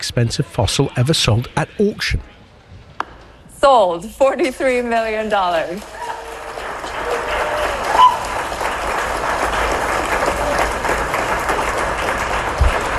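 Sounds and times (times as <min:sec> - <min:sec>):
speech: 0:00.1 - 0:02.4, 0:03.6 - 0:06.0
enthusiastic clapping at auction sale: 0:05.3 - 0:12.9.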